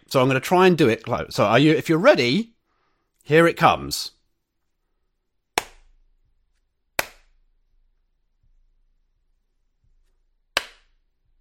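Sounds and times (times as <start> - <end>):
speech: 0.1 - 2.5, 3.2 - 4.2
hand claps: 5.6 - 5.9, 7.0 - 7.4, 10.6 - 11.0.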